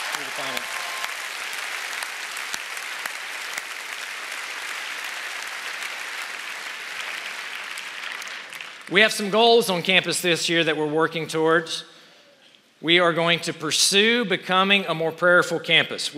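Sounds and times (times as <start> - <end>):
audience applause: 0.0 - 9.0
speech: 8.9 - 11.9, 12.8 - 16.1.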